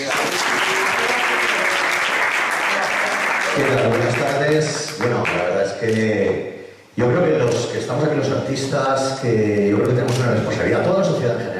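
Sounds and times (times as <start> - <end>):
crowd applause: 0.0 - 5.4
speech: 4.5 - 11.5.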